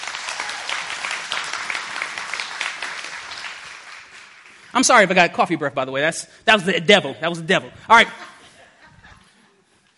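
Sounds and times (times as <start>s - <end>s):
audience clapping: 0.0s - 5.4s
speech: 4.8s - 8.3s
laughter: 7.9s - 9.8s.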